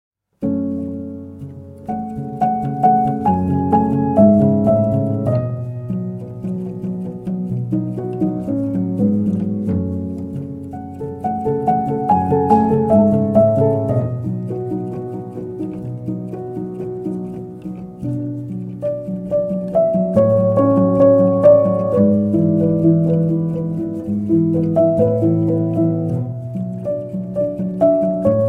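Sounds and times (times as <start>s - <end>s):
solo piano: 0.2s - 28.4s.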